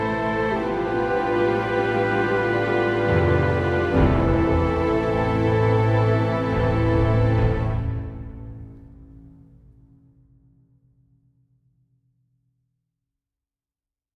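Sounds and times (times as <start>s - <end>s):
in-game orchestral music: 0.0s - 9.0s.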